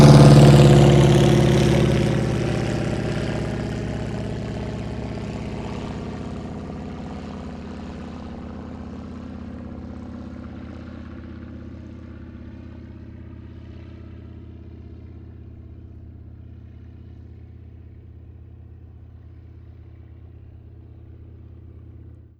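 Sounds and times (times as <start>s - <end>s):
low-level flyby: 0.0s - 14.0s.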